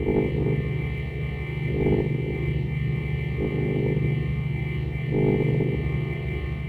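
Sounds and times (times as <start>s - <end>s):
weapons cache hum: 0.0s - 6.6s.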